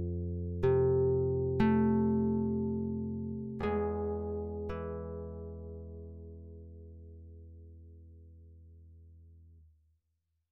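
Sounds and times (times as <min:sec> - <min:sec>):
nylon-string guitar: 0:00.6 - 0:06.3.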